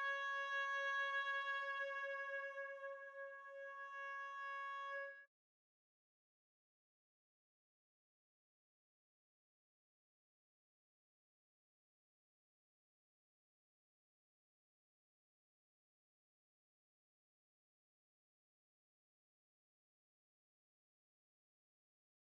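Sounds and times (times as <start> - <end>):
oboe: 0.0 - 5.3.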